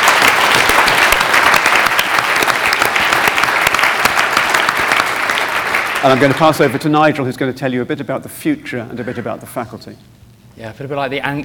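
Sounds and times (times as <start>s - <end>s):
audience applause: 0.0s - 6.8s
speech: 6.0s - 11.4s.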